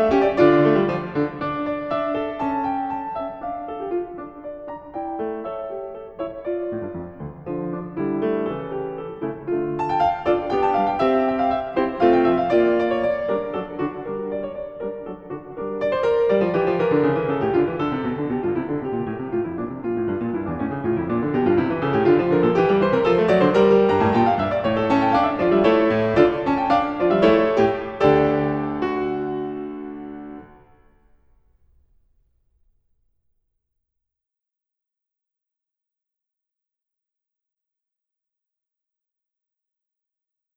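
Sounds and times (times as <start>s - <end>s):
toccata and fugue: 0.0s - 30.9s.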